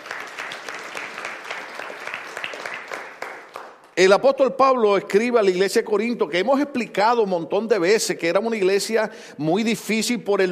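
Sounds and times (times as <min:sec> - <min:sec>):
audience applause: 0:00.0 - 0:04.0
speech: 0:04.0 - 0:10.4.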